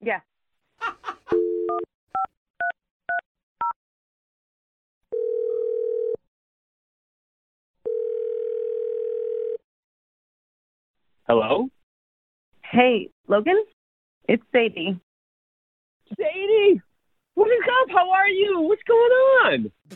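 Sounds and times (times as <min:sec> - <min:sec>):
speech: 0:00.0 - 0:01.0, 0:11.3 - 0:11.8, 0:12.7 - 0:13.7, 0:14.3 - 0:15.0, 0:16.1 - 0:19.9
dial tone: 0:01.3 - 0:02.3, 0:05.1 - 0:06.3, 0:07.8 - 0:09.6.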